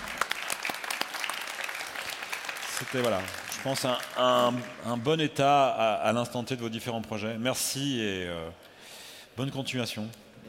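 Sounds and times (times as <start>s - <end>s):
audience applause: 0.0s - 5.0s
speech: 2.8s - 8.7s, 9.4s - 10.4s.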